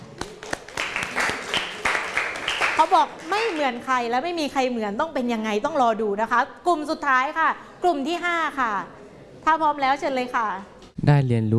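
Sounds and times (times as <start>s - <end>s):
audience applause: 0.0s - 3.7s
speech: 2.8s - 11.5s.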